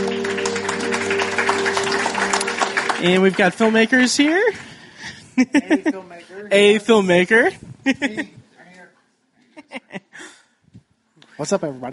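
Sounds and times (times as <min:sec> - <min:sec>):
audience applause: 0:00.0 - 0:05.1
speech: 0:03.0 - 0:04.7, 0:05.4 - 0:08.4, 0:11.4 - 0:11.9
laughter: 0:05.0 - 0:06.1, 0:09.5 - 0:10.2.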